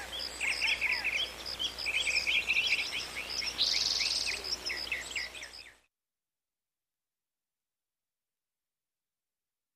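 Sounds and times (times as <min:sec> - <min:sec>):
birds chirping in a forest: 0:00.0 - 0:05.9.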